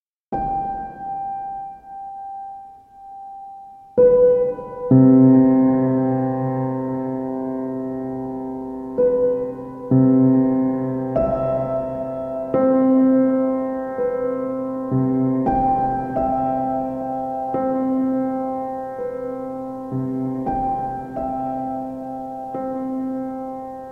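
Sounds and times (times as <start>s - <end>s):
piano: 0.3s - 23.9s.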